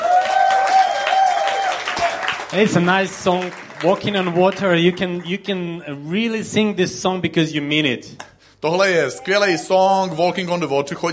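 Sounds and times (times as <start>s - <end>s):
crowd clapping: 0.0s - 5.8s
speech: 2.5s - 11.1s.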